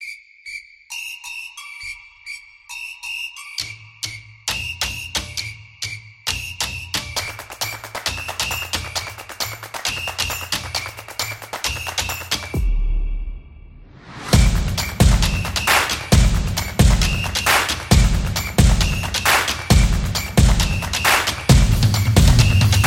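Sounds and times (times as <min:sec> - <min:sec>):
sport drums for football background: 0:06.3 - 0:13.4, 0:14.0 - 0:22.8.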